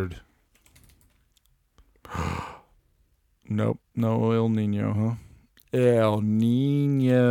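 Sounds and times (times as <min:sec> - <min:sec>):
speech: 0:00.0 - 0:00.3, 0:03.5 - 0:07.2
faint typing on a computer keyboard while searching: 0:00.5 - 0:01.5.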